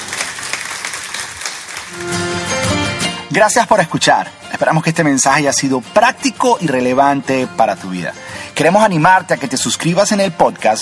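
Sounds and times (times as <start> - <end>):
audience applauding: 0.0 - 3.0
speech: 3.3 - 10.7.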